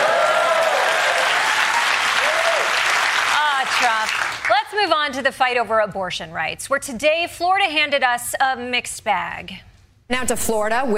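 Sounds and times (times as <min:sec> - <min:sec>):
audience clapping: 0:00.0 - 0:04.6
speech: 0:04.9 - 0:10.9.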